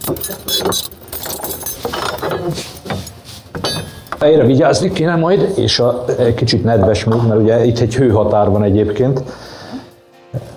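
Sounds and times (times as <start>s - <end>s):
large key jangling against metal: 0.0s - 3.2s
speech: 0.1s - 1.5s, 2.1s - 3.0s, 4.2s - 9.5s.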